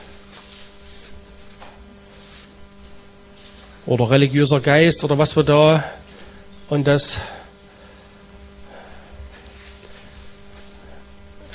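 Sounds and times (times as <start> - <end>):
handwriting strokes: 0.0 - 2.6
low hum: 0.0 - 11.5
speech: 3.9 - 6.0, 6.7 - 7.4.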